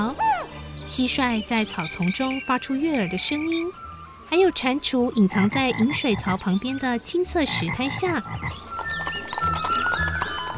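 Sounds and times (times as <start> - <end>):
speech: 0.9 - 8.9
horse hooves running: 7.5 - 10.5.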